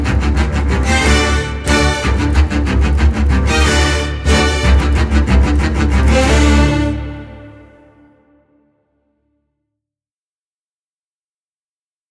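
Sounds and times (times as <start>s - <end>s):
string quartet: 0.0s - 8.1s.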